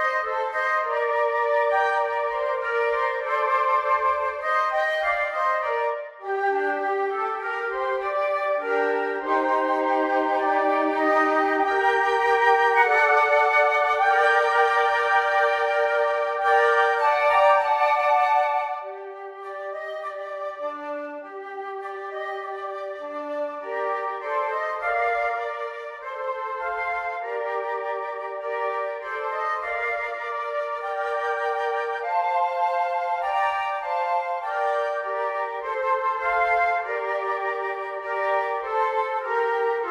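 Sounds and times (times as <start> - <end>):
flute trio playing: 0.0 - 39.9.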